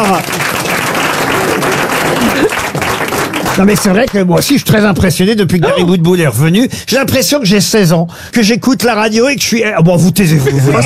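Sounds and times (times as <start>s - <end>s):
audience applause: 0.0s - 4.2s
speech: 3.6s - 10.8s.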